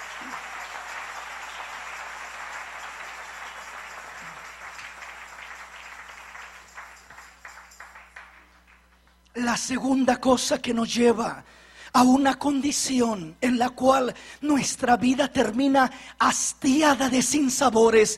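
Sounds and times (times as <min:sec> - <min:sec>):
audience applauding: 0:00.0 - 0:09.2
speech: 0:09.4 - 0:18.1.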